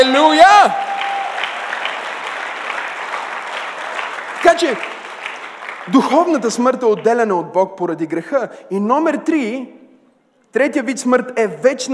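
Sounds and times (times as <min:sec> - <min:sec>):
audience applause: 0:00.2 - 0:06.8
speech: 0:04.6 - 0:04.9, 0:05.8 - 0:09.8, 0:10.5 - 0:11.9.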